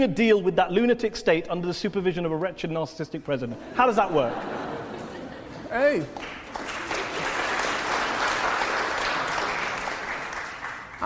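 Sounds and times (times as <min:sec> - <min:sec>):
speech: 0:00.0 - 0:04.7, 0:05.7 - 0:06.7
laughter: 0:03.5 - 0:06.1
audience applause: 0:05.9 - 0:11.0.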